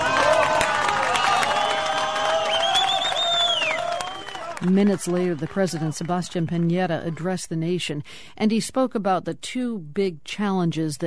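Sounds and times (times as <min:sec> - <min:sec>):
high rising whoop: 0:00.0 - 0:04.6
family and rescuers applauding: 0:00.0 - 0:07.4
speech: 0:04.6 - 0:11.0.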